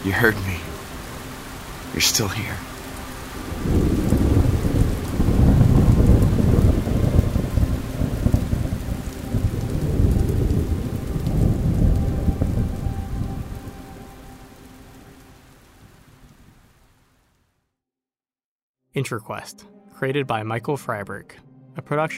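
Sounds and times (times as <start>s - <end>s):
speech: 0.0s - 0.7s, 1.9s - 2.7s, 19.0s - 22.1s
rainfall at sunset: 0.0s - 17.5s
low rumbling thunder: 3.4s - 14.3s.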